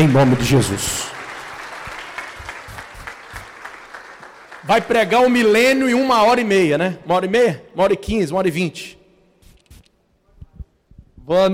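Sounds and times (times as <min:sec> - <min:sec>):
speech: 0:00.0 - 0:01.2, 0:04.7 - 0:09.0, 0:11.2 - 0:11.5
audience applauding: 0:00.0 - 0:05.5.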